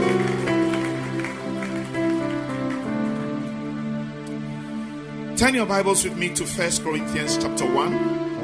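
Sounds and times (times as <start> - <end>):
audience clapping: 0.0 - 4.4
speech: 5.4 - 8.3.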